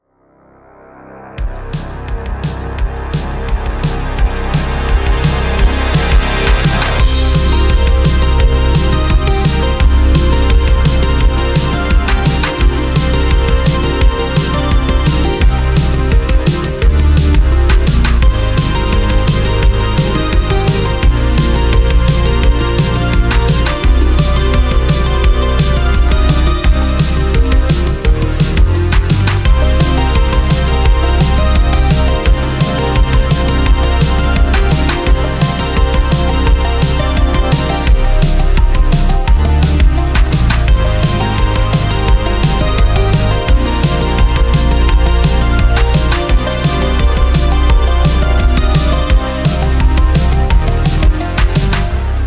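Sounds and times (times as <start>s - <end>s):
rhythmic music theme: 1.4s - 52.1s.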